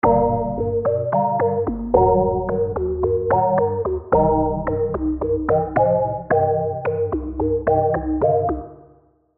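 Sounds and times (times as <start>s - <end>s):
keyboard playing: 0.0s - 8.9s.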